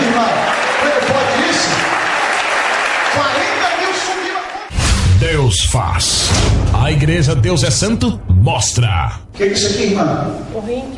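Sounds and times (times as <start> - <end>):
audience applause: 0.0 - 4.7
speech: 5.6 - 10.9.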